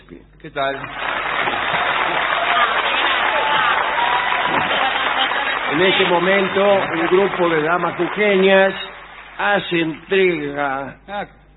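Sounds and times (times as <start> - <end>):
speech: 0.4 - 1.5, 5.7 - 11.4
large crowd applauding enthusiastically: 0.7 - 10.5.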